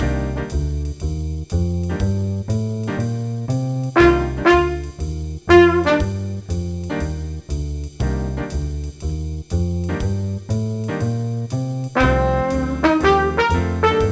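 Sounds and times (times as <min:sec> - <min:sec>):
jazz improvisation in C minor with jazz rhythms: 0:00.0 - 0:14.1
trumpet: 0:04.0 - 0:06.4, 0:12.0 - 0:14.1.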